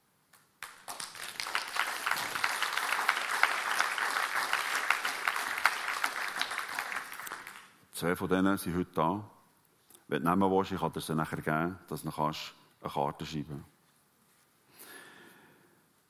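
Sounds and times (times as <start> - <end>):
audience applause: 0.6 - 7.7
speech: 8.0 - 9.4, 10.1 - 13.7.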